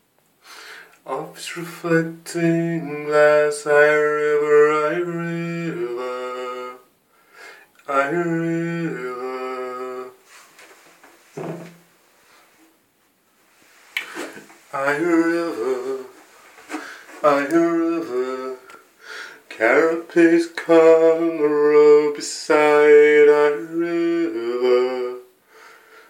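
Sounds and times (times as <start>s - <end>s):
improvised song sketch: 0.9s - 7.0s, 7.7s - 10.8s, 13.8s - 25.4s.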